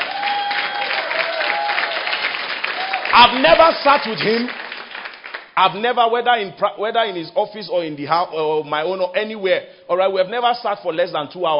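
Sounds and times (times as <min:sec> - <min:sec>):
audience clapping: 0:00.0 - 0:05.6
speech: 0:03.2 - 0:04.6, 0:05.6 - 0:11.5.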